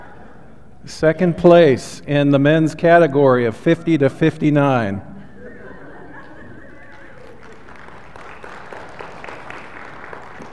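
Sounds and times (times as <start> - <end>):
speech: 0.9 - 5.1
laughter: 3.6 - 9.9
audience clapping: 6.1 - 10.5.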